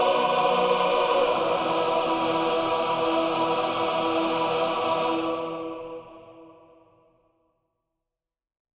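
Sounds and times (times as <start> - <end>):
choir singing legato: 0.0 - 6.8.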